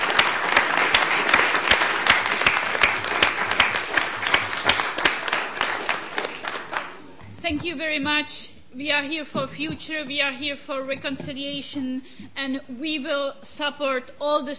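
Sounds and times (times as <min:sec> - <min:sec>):
audience applause: 0:00.0 - 0:07.1
speech: 0:07.5 - 0:14.5.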